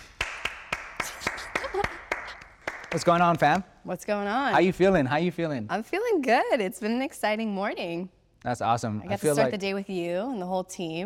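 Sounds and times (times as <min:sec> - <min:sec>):
applause: 0:00.0 - 0:03.6
speech: 0:02.9 - 0:11.0.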